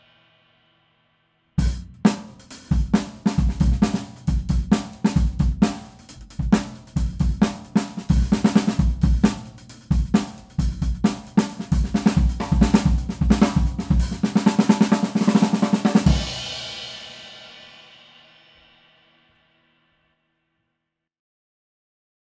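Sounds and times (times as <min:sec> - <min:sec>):
DW Craviotto 5x14 snare drum: 0:01.6 - 0:17.3.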